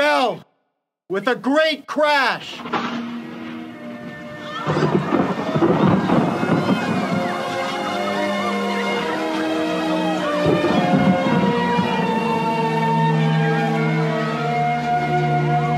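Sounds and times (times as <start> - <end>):
speech: 0.2 - 0.5, 1.1 - 3.0, 4.6 - 5.9
deep thunder rumbling: 2.6 - 15.7
steady rain: 3.6 - 15.7.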